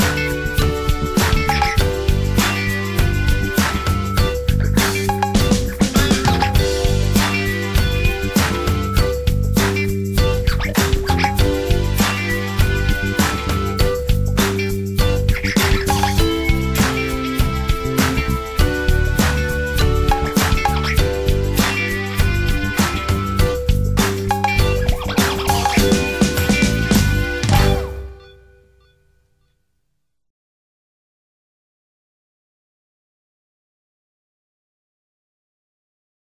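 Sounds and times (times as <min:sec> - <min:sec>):
recorder playing: 0:00.0 - 0:28.7.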